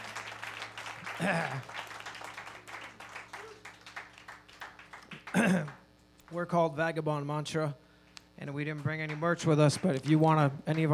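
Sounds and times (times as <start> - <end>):
audience applause: 0.0 - 5.8
speech: 1.2 - 1.8, 5.4 - 5.7, 6.3 - 7.8, 8.4 - 10.9.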